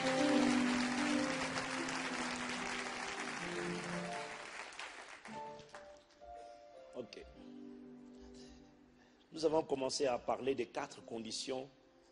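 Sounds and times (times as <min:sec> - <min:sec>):
audience clapping: 0:00.0 - 0:06.2
speech: 0:09.4 - 0:11.8.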